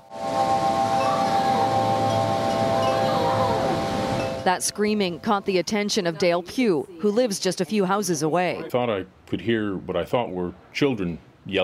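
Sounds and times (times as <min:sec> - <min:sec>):
wind roaring on security camera: 0:00.1 - 0:05.8
speech: 0:04.4 - 0:11.6.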